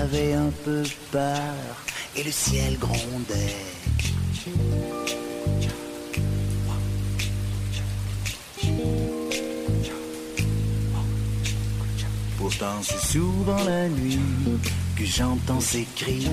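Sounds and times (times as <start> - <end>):
steady rain: 0.0 - 16.3
speech: 0.1 - 5.2, 12.5 - 16.3
low sustained musical chords: 2.7 - 15.6.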